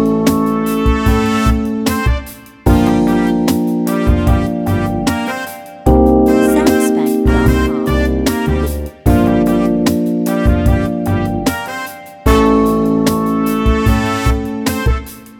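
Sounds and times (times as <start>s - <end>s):
D music loop with brass melody: 0.0s - 15.3s.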